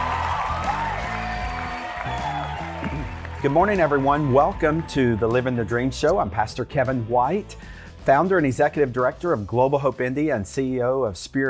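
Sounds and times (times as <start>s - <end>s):
studio audience applause welcoming guests onto a show: 0.0s - 6.0s
speech: 3.4s - 11.4s.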